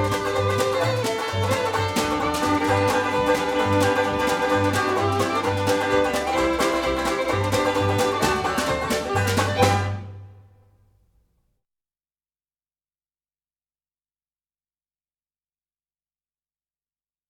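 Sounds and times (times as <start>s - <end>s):
song at original tempo: 0.0s - 10.6s.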